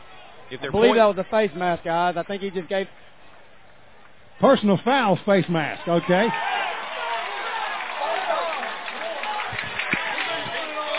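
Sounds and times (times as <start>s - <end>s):
speech: 0.5s - 3.1s, 4.4s - 6.5s
large stadium crowd cheering a penalty flag: 5.4s - 10.9s.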